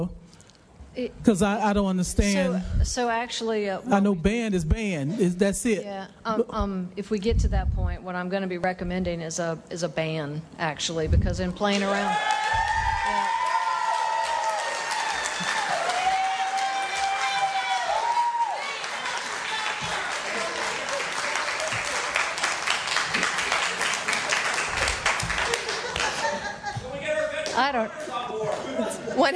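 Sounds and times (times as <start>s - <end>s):
speech: 1.0s - 12.4s
audience applause at a public meeting: 11.8s - 26.6s
scattered whoops: 12.1s - 18.7s
laughter: 24.2s - 29.3s.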